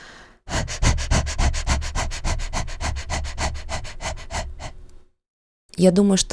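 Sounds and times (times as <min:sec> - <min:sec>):
short rapid diaphragmatic breaths in and out: 0:00.0 - 0:05.0.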